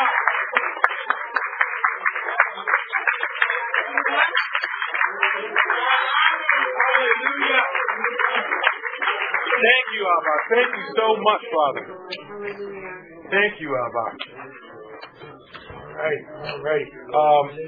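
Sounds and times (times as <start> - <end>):
audience clapping: 0.0 - 12.5, 13.3 - 17.6
voices calling out: 5.5 - 17.6
speech: 10.1 - 14.6, 16.0 - 17.6.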